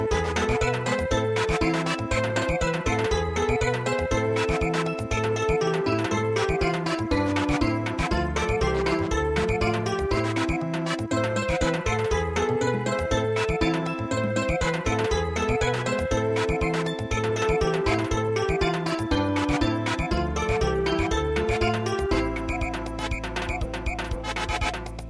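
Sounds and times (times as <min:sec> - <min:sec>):
traditional samba music: 0:00.1 - 0:12.4, 0:13.2 - 0:25.0.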